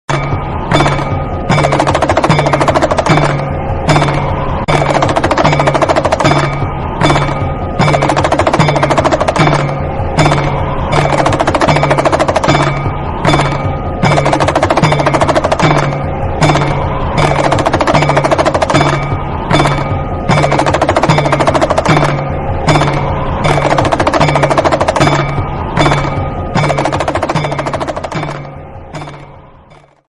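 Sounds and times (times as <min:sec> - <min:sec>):
Shiva damaru drum ringtone: 0:00.1 - 0:30.0.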